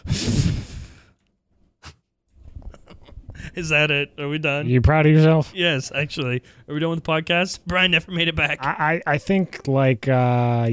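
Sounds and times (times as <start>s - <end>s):
breathing into a microphone: 0.0s - 1.2s, 6.4s - 6.7s
speech: 3.5s - 10.7s.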